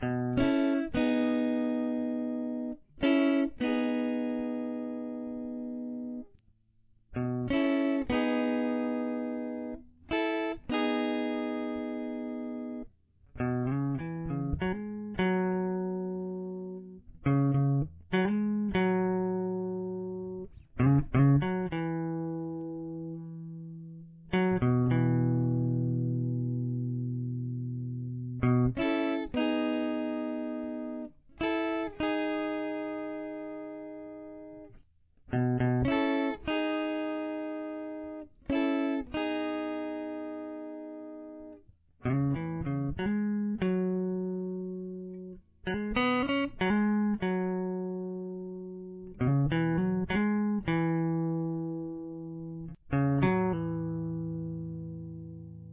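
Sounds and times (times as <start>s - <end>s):
guitar: 0.0s - 55.7s.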